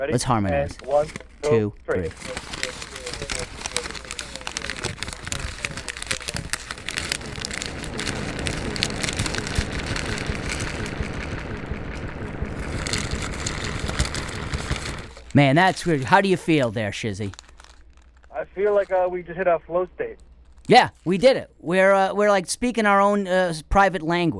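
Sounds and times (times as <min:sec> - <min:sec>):
speech: 0:00.0 - 0:02.6, 0:15.4 - 0:17.4, 0:18.6 - 0:24.3
fast-food paper bags crumpling: 0:00.2 - 0:19.1.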